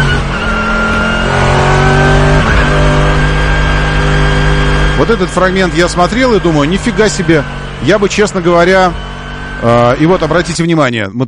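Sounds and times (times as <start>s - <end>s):
race car engines roaring as a Mercedes GT overtakes a Logan at Nürburgring 24 Hours: 0.0s - 10.8s
speech: 5.0s - 11.2s.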